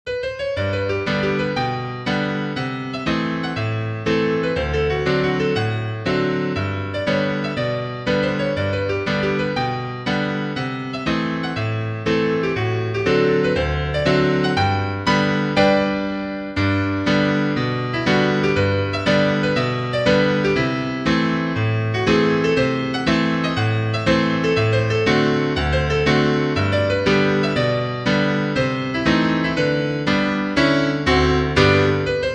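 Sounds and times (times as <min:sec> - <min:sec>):
piano: 0:00.0 - 0:32.3.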